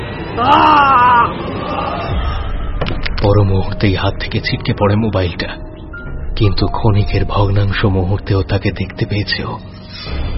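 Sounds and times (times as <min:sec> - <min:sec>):
speech: 0:00.4 - 0:01.0, 0:03.2 - 0:05.7, 0:06.4 - 0:10.2
man's anguished scream: 0:00.4 - 0:01.9.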